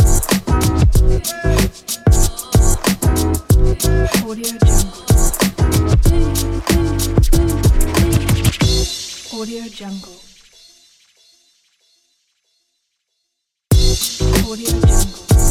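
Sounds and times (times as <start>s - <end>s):
boom bap hip hop beat: 0.0s - 9.6s, 13.7s - 15.4s.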